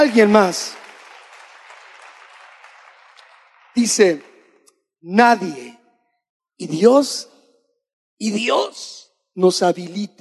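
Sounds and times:
speech: 0.0 - 0.8, 3.8 - 4.3, 5.0 - 5.8, 6.6 - 7.3, 8.2 - 10.1
audience applause: 0.0 - 4.3.

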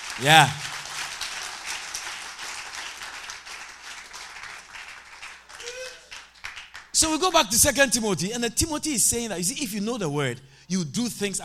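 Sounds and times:
crowd clapping: 0.0 - 7.0
speech: 0.2 - 0.7, 7.0 - 11.4
person whooping: 0.2 - 0.8, 5.6 - 6.1.

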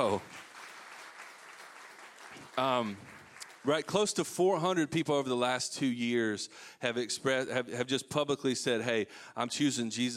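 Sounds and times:
speech: 0.0 - 0.5, 2.6 - 10.1
audience applause: 0.0 - 4.0.

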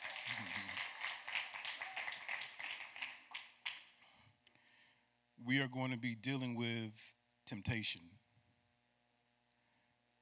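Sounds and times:
crowd clapping: 0.0 - 4.0
speech: 5.4 - 8.2.

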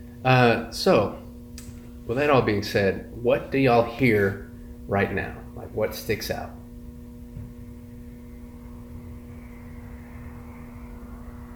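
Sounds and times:
speech: 0.2 - 1.2, 2.1 - 6.6
cars driving down the street: 8.0 - 11.5.

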